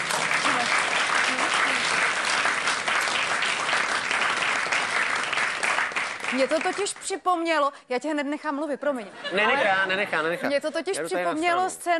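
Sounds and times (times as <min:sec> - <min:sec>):
audience applause: 0:00.0 - 0:07.1
speech: 0:06.3 - 0:11.9.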